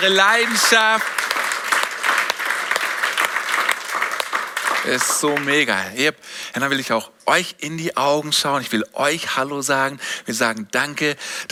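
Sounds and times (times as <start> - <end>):
speech: 0.0 - 1.3, 4.8 - 11.5
audience applause: 0.0 - 5.8.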